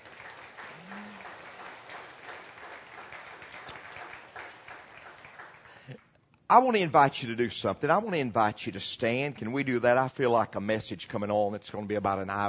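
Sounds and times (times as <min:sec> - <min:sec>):
audience applause: 0:00.0 - 0:06.0
speech: 0:05.9 - 0:12.4.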